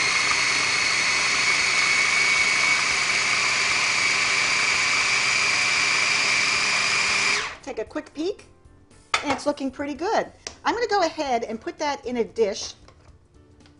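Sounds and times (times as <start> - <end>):
blender whirling frozen bananas: 0.0 - 7.6
speech: 7.9 - 8.6, 9.2 - 12.8.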